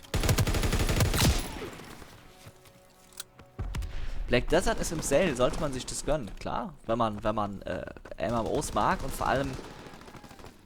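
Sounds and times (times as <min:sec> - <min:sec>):
video game guns fired from the hip: 0:00.1 - 0:01.6, 0:08.3 - 0:10.6
speech: 0:04.3 - 0:09.8.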